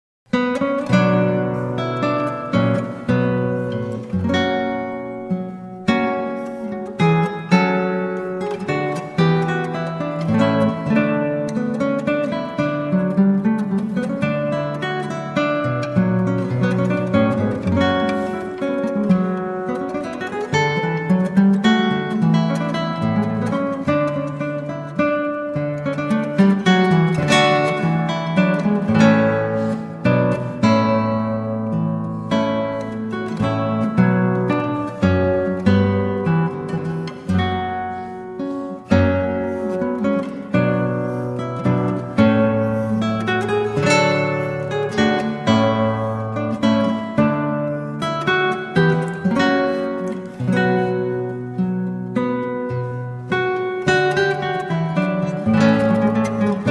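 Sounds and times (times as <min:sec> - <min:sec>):
lute courante: 0:00.3 - 0:56.6.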